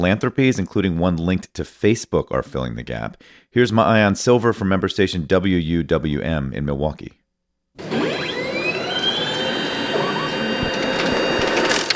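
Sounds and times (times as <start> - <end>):
speech: 0.0 - 7.2
DS850 ballot counting machine running at Milwaukee Central Count: 7.8 - 11.9.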